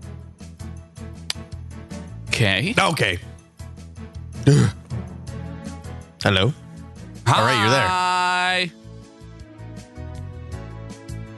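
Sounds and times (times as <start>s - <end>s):
speech: 2.4s - 3.3s, 4.4s - 4.8s, 6.3s - 6.6s, 7.3s - 8.8s
hard sneeze: 4.4s - 4.8s.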